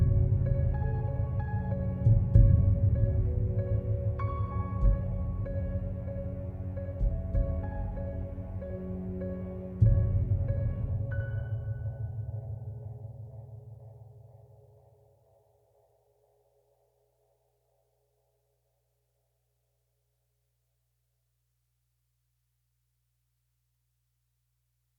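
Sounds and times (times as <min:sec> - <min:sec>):
epic inspiring music: 0:00.0 - 0:11.6.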